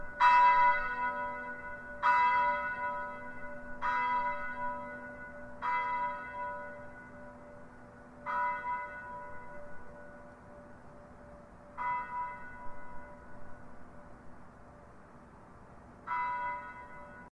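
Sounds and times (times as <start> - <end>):
angelus bells and noon peal: 0.0 - 14.3, 16.0 - 17.2.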